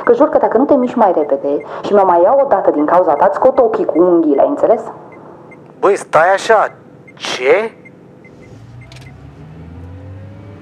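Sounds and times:
speech: 0.1 - 5.1, 5.8 - 7.8
car engine pulling away from a stop: 6.8 - 10.5.

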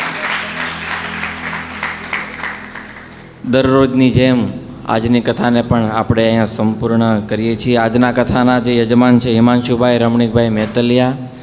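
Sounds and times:
audience applause welcoming a revered monk at a Hindu religious discourse: 0.0 - 3.4
speech: 3.4 - 11.4.

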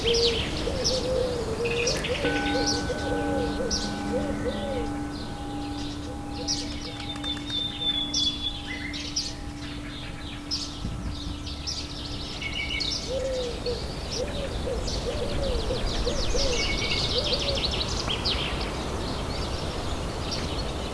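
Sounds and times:
soft wavering cooing calls: 0.0 - 8.4, 13.0 - 18.6
long low held note: 0.0 - 14.0
birds chirping and tweeting: 0.0 - 20.9.

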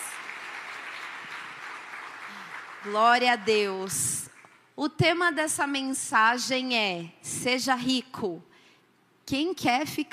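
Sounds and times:
audience applause: 0.0 - 3.5
speech: 2.8 - 8.5, 9.3 - 10.1.

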